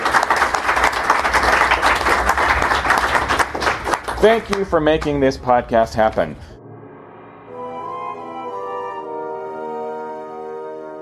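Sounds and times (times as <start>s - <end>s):
crowd applauding: 0.0s - 5.2s
speech: 4.2s - 6.5s.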